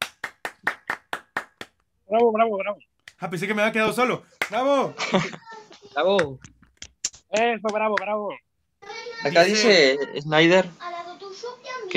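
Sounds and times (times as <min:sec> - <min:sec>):
clapping applause: 0:00.0 - 0:01.8
speech: 0:02.1 - 0:06.5, 0:07.3 - 0:08.4, 0:09.2 - 0:10.9.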